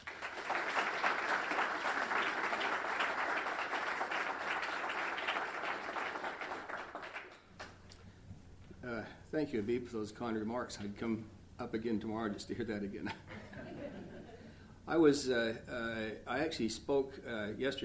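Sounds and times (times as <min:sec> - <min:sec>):
crowd applause welcoming a speaker: 0:00.0 - 0:07.4
speech: 0:09.3 - 0:13.3, 0:14.9 - 0:17.8
laughter: 0:13.3 - 0:14.6.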